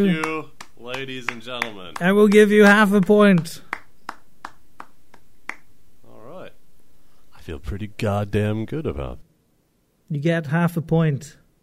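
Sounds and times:
speech: 0.0s - 0.4s, 1.0s - 3.6s, 7.5s - 9.2s, 10.1s - 11.4s
one person clapping hands: 0.0s - 5.7s.

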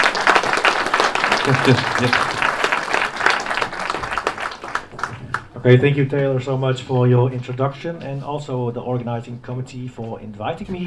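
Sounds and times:
audience applause welcoming a speaker: 0.0s - 5.6s
laughter: 1.2s - 2.6s
speech: 1.5s - 2.4s, 5.6s - 10.8s.

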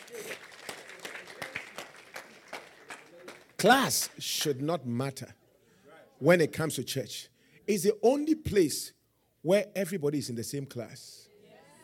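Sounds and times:
crowd audience clapping hands: 0.0s - 4.7s
speech: 3.6s - 5.4s, 6.2s - 11.2s.

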